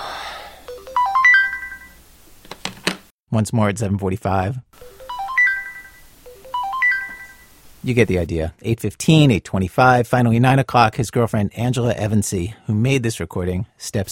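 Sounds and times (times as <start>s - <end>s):
alarm clock ringing: 0.7s - 2.0s, 4.8s - 7.5s
speech: 3.3s - 4.7s, 7.8s - 14.1s.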